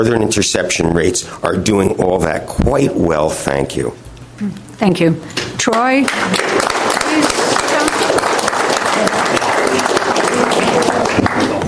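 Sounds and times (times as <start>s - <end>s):
speech: 0.0s - 6.5s
audience applause: 6.1s - 11.6s.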